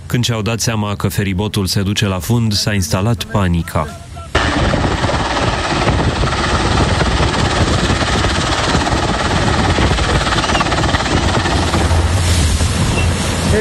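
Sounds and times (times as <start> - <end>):
speech: 0.1 - 4.1
rescue helicopter hovering over sinking ferry: 4.3 - 13.5.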